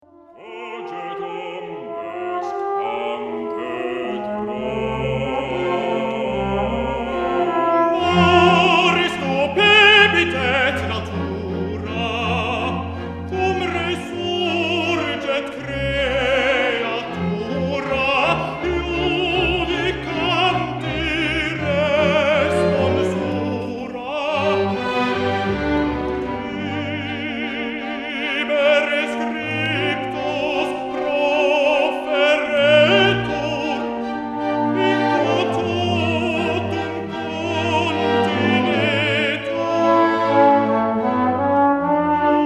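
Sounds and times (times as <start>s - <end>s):
tuba: 0.0s - 42.4s.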